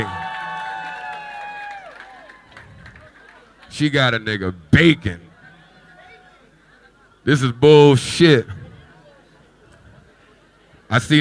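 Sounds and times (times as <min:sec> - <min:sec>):
crowd applause for the DJ: 0:00.0 - 0:03.7
speech: 0:03.8 - 0:05.3, 0:07.2 - 0:08.6, 0:10.9 - 0:11.1.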